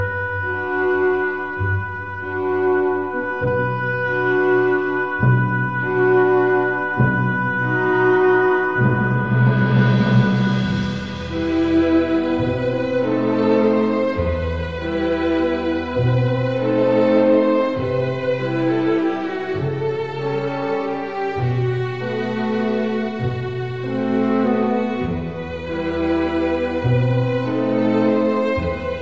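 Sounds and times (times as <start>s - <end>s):
oboe: 0.0s - 29.0s.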